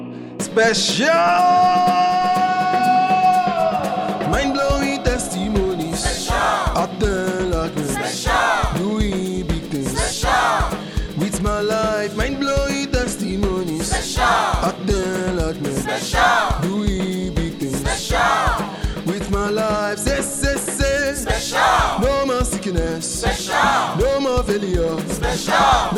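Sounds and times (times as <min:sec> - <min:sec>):
song: 0:00.4 - 0:25.9.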